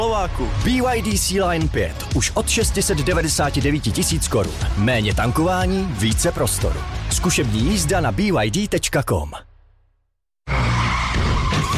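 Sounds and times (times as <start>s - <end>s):
speech: 0.2s - 9.5s
car tyres skidding and screeching: 10.5s - 11.7s.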